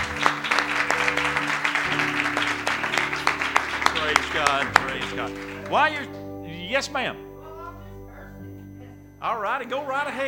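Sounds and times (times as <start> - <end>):
audience hand clapping: 0.0 - 6.2
low sustained instrumental tone: 0.0 - 10.2
speech: 4.4 - 7.3, 9.2 - 10.2.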